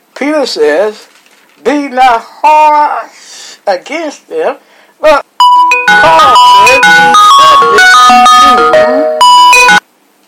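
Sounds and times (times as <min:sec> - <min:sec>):
speech: 0:00.2 - 0:05.3, 0:05.9 - 0:09.8
phone ringing with an electronic ringtone melody for an incoming call: 0:05.4 - 0:09.8.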